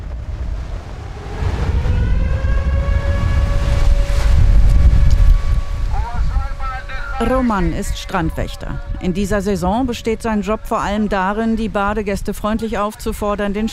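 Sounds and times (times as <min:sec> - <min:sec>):
sea surf: 0:00.0 - 0:08.5
wailing air-raid siren: 0:00.2 - 0:12.3
speech: 0:07.2 - 0:13.7.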